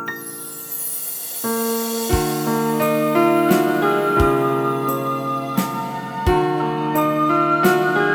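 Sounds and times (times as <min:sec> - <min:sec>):
slow waltz dance music: 0:00.1 - 0:08.1.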